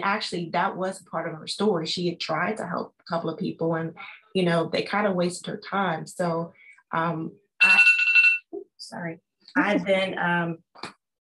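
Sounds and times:
speech: 0:00.0 - 0:07.9, 0:08.9 - 0:11.0
phone alarm reminder chimes: 0:07.6 - 0:08.5.

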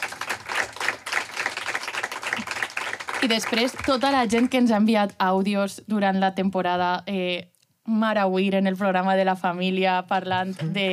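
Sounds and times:
audience applause: 0:00.0 - 0:04.6
speech: 0:03.2 - 0:10.9.

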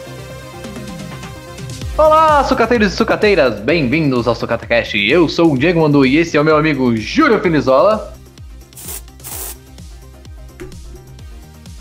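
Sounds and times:
steady rhythmic low background: 0:00.6 - 0:11.7
speech: 0:02.0 - 0:08.2
deodorant being sprayed: 0:08.7 - 0:09.8.

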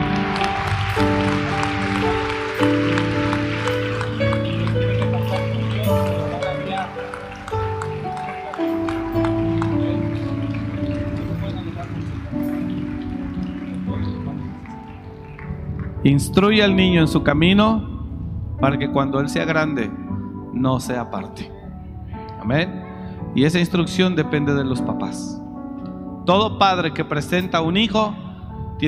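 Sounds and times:
audience applause: 0:00.0 - 0:16.6
low musical tones: 0:00.0 - 0:28.8
speech: 0:16.1 - 0:18.0, 0:18.6 - 0:20.0, 0:20.6 - 0:21.6, 0:22.4 - 0:22.8, 0:23.4 - 0:25.4, 0:26.3 - 0:28.2.

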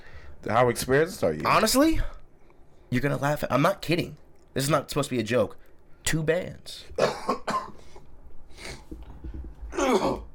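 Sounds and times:
speech: 0:00.4 - 0:02.2, 0:02.9 - 0:07.3, 0:09.9 - 0:10.2
person coughing: 0:07.0 - 0:07.9, 0:09.7 - 0:10.3.

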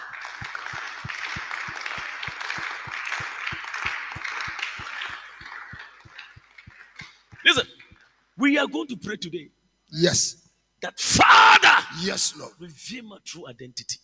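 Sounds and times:
audience clapping in unison: 0:00.0 - 0:08.0
crowd noise: 0:00.0 - 0:08.0
speech: 0:07.4 - 0:07.8, 0:08.4 - 0:14.0.

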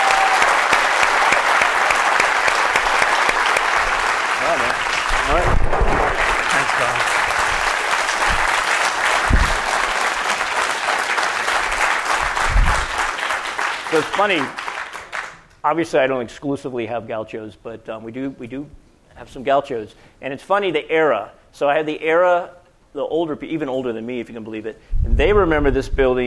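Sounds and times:
audience applause welcoming a guest speaker at a UC Santa Barbara alumni event: 0:00.0 - 0:15.5
speech: 0:14.0 - 0:14.6, 0:15.6 - 0:26.2.

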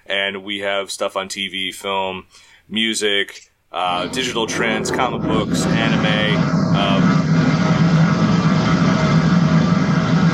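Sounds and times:
speech: 0:00.1 - 0:07.2
dragon breathing fire: 0:03.9 - 0:10.3.

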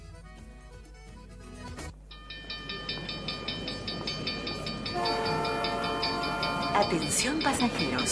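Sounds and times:
zonal train rolling rumble: 0:02.0 - 0:08.1
sustained chord-like train horn: 0:04.9 - 0:08.1
speech: 0:06.8 - 0:08.1.

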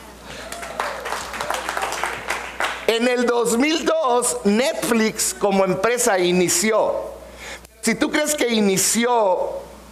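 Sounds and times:
audience applause at a live talk: 0:00.3 - 0:02.9
speech: 0:02.9 - 0:07.2, 0:07.9 - 0:09.7.

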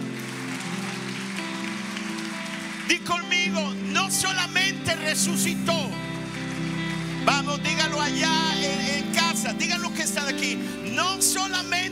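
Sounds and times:
audience applauding: 0:00.0 - 0:05.2, 0:05.8 - 0:08.7
speech: 0:02.9 - 0:06.1, 0:07.2 - 0:11.9.

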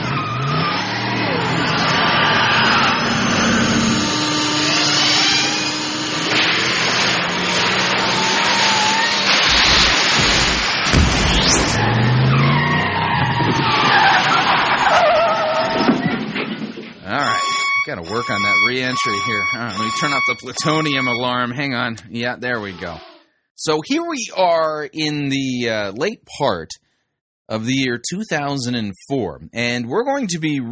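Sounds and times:
time machine car engine revving: 0:00.0 - 0:14.8, 0:17.1 - 0:21.3
squealing tires: 0:00.0 - 0:23.0
crackling electrical bursts: 0:06.3 - 0:12.1
rising whooshes: 0:09.1 - 0:13.6
speech: 0:18.9 - 0:26.8, 0:27.5 - 0:30.7.

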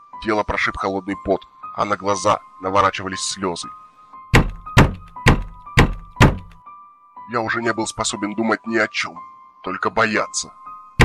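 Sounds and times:
speech: 0:00.2 - 0:03.8, 0:07.3 - 0:10.6
knocks on a window: 0:04.4 - 0:06.6.

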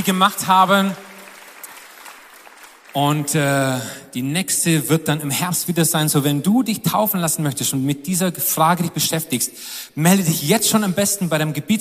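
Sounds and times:
speech: 0:00.0 - 0:01.1, 0:02.9 - 0:11.7
crowd clapping: 0:00.0 - 0:04.0.

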